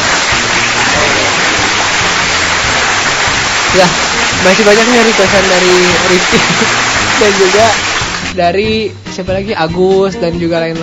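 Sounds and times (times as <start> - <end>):
applause: 0.0 - 8.4
speech: 3.7 - 10.8
laughter: 5.9 - 7.6.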